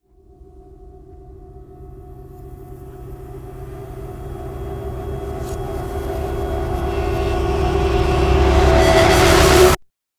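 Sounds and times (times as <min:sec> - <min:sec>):
trailer suck-back effect: 0:02.2 - 0:09.8.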